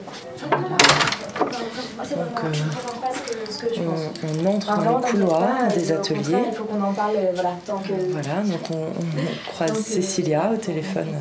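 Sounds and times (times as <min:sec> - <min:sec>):
speech: 0:00.4 - 0:01.0, 0:02.0 - 0:11.1
badge-operated door click and thud: 0:00.5 - 0:01.6.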